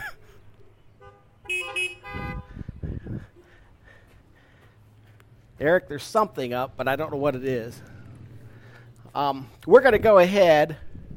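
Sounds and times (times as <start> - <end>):
car horns tooting: 0.8 - 3.0
speech: 5.6 - 7.9, 9.2 - 10.8.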